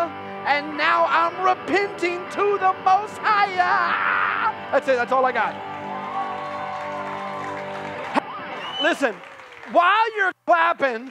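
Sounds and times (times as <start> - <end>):
speech: 0.4 - 5.7, 8.8 - 11.0
audience clapping: 5.4 - 11.0.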